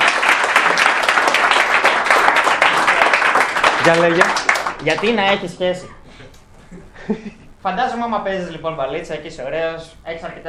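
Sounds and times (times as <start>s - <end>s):
crowd applause: 0.0s - 5.5s
speech: 3.8s - 6.0s, 7.1s - 10.4s.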